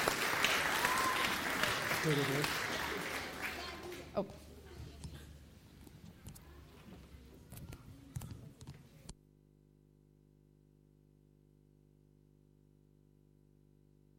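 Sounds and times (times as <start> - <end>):
round of applause: 0.0 - 4.3.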